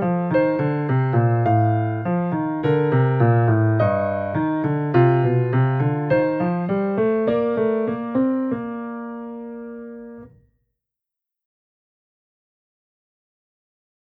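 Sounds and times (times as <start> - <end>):
piano exercises with passages in major scales: 0.0 - 10.4.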